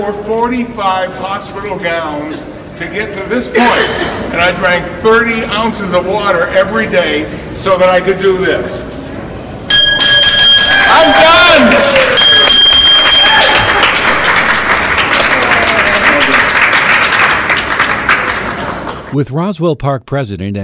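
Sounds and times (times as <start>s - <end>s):
speech: 0.0s - 9.0s, 19.1s - 20.6s
ceremonial bell rung after completing prostate cancer treatment: 9.7s - 14.8s
applause: 11.4s - 19.1s.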